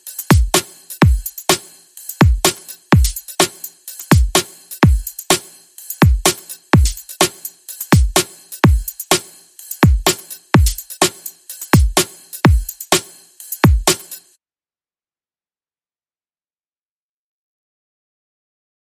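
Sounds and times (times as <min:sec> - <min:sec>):
drum beats: 0:00.0 - 0:14.3.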